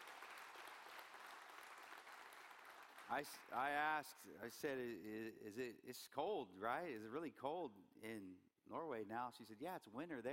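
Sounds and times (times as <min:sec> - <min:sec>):
audience clapping in welcome: 0:00.0 - 0:03.9
speech: 0:03.1 - 0:10.3.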